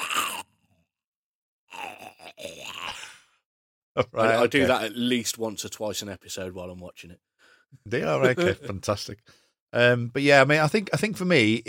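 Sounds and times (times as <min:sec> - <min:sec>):
person imitating a zombie walker groan from The Walking Dead: 0:00.0 - 0:00.7, 0:01.7 - 0:03.3
speech: 0:04.0 - 0:11.6.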